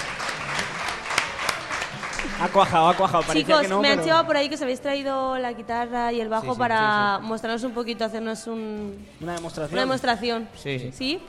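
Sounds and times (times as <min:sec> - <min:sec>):
audience applause: 0:00.0 - 0:03.8
speech: 0:02.4 - 0:11.2.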